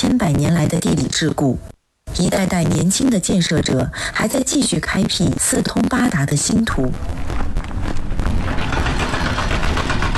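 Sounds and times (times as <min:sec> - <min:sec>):
speech: 0:00.1 - 0:08.0
large machinery working at the Weixin to Yiliang expressway construction site: 0:08.4 - 0:10.1.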